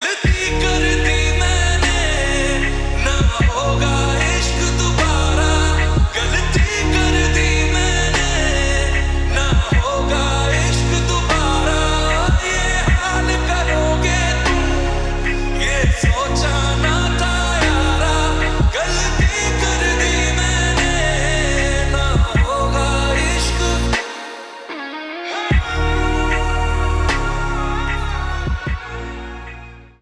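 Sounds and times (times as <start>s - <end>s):
lo-fi music mix: 0.0s - 30.0s.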